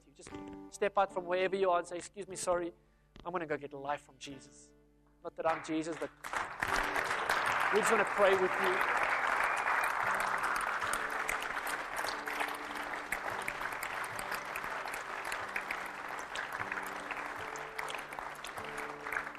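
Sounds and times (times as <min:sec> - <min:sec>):
speech: 0:00.2 - 0:06.5, 0:07.7 - 0:09.0
audience clapping: 0:05.5 - 0:19.3.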